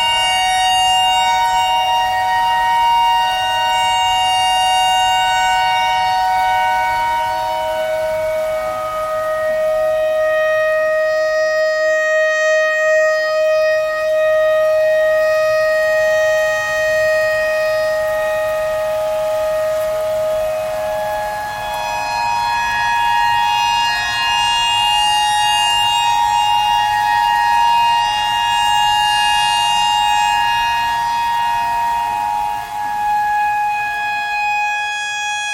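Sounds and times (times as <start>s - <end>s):
clarinet notes in E pentatonic imitating a tornado siren: 0.0s - 35.5s.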